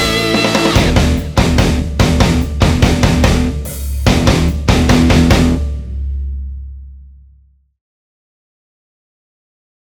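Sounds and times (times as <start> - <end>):
punchy drums: 0.0 - 7.4.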